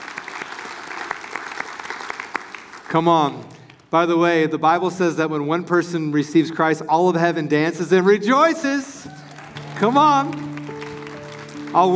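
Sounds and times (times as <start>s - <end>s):
audience clapping: 0.0s - 3.9s, 9.0s - 11.9s
speech: 2.9s - 9.2s, 9.8s - 10.5s, 11.7s - 11.9s.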